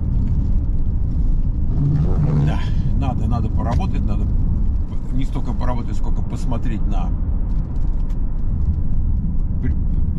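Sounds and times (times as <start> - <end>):
car driving on dry asphalt after rain: 0.0 - 10.1
speech: 3.0 - 7.3.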